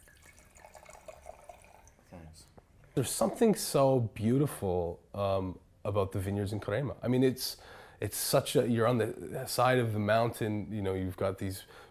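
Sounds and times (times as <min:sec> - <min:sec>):
wine pouring into a glass: 0:00.0 - 0:02.1
speech: 0:02.4 - 0:11.8.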